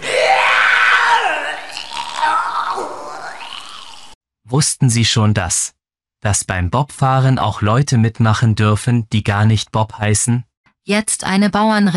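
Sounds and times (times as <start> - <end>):
person vomiting: 0.0 - 4.2
speech: 4.5 - 11.9.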